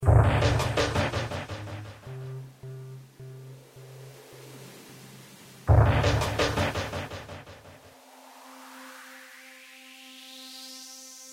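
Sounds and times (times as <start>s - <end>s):
drum: 0.0s - 2.4s, 5.7s - 7.8s.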